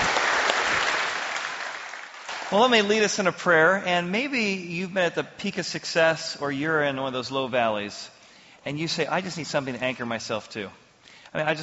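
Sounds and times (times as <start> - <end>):
audience applause: 0.0 - 2.8
speech: 2.5 - 11.6.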